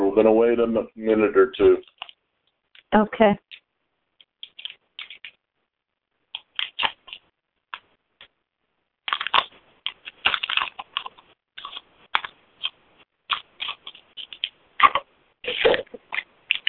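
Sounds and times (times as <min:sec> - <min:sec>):
speech: 0:00.2 - 0:02.0, 0:02.9 - 0:03.6
crinkly paper being handled: 0:04.3 - 0:05.4, 0:09.1 - 0:16.6.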